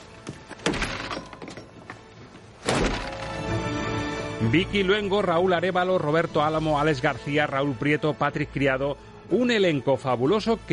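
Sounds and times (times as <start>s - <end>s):
door being battered down: 0.6s - 1.7s, 2.6s - 3.5s
speech: 4.4s - 10.7s.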